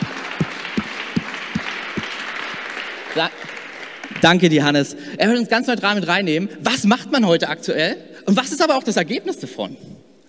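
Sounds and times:
audience applause: 0.0 - 4.8
speech: 3.2 - 3.6, 4.2 - 9.9.

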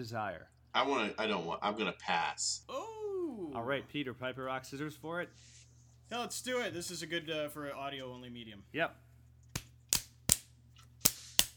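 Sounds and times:
speech: 0.0 - 9.1
hands slapping on buttocks: 9.6 - 11.5.

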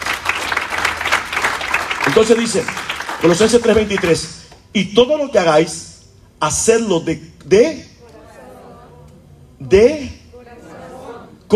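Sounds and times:
audience applause: 0.0 - 4.1
speech: 2.1 - 7.9, 9.6 - 10.2.

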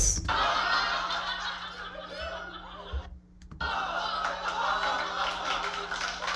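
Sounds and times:
crowd laughing: 0.3 - 6.3
crowd clapping: 3.6 - 6.3.

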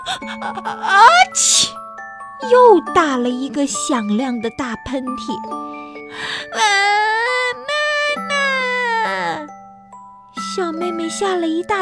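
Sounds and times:
young child bursting into loud crying: 0.0 - 1.8, 6.5 - 9.5
speech: 0.1 - 1.8, 2.4 - 7.0, 10.6 - 11.8.

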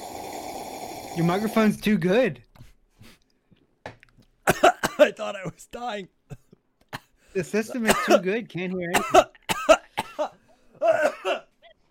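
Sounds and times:
speech: 1.2 - 2.5, 5.2 - 6.4, 7.4 - 9.3
person coughing after breathing in coffee: 4.5 - 5.2, 7.8 - 8.3, 8.9 - 11.8.

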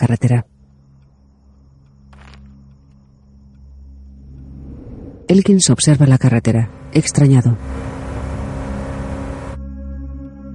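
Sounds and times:
speech: 0.0 - 0.5, 5.3 - 7.9
car accelerating on a road: 4.1 - 9.6.

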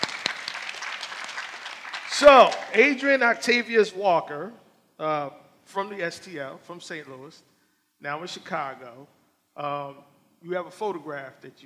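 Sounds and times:
audience applause: 0.0 - 3.0
speech: 2.2 - 11.6.

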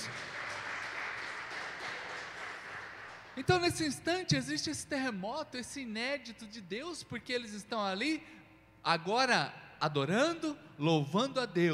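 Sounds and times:
audience applause: 0.0 - 3.4
speech: 3.4 - 11.7.

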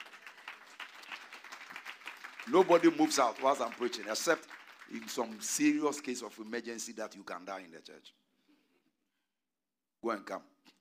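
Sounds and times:
church congregation clapping in honour of their pastor: 0.0 - 6.4
speech: 2.5 - 8.2, 10.0 - 10.5.

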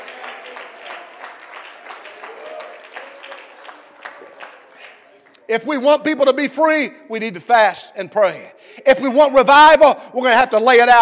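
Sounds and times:
audience clapping in a steady rhythmic beat: 0.0 - 5.5
speech: 5.5 - 10.9.

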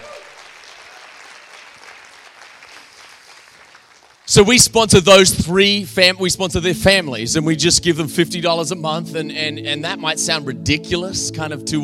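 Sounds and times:
audience applause: 0.0 - 4.3
speech: 4.3 - 11.8.

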